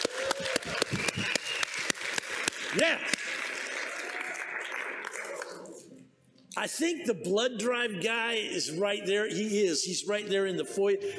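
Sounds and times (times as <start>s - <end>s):
audience applause: 0.0s - 5.8s
speech: 2.8s - 3.2s, 6.6s - 11.1s.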